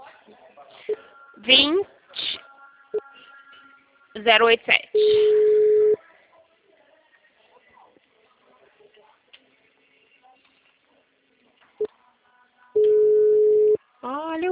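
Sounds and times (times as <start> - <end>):
faint noise: 0.0 - 14.4
speech: 4.2 - 5.4
telephone busy signal: 5.0 - 6.0.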